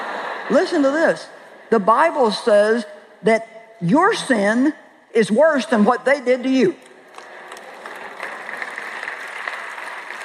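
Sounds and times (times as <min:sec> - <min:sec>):
speech: 0:00.5 - 0:06.8
listener hand clapping: 0:07.1 - 0:10.2.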